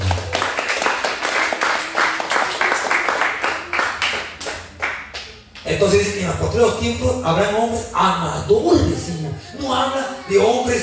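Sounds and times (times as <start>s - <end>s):
audience clapping in a steady rhythmic beat: 0.0s - 5.8s
speech: 5.8s - 10.8s.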